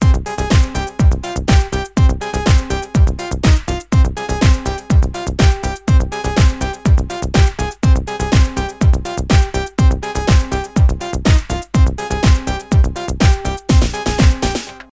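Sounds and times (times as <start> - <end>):
techno pop music: 0.0 - 14.9.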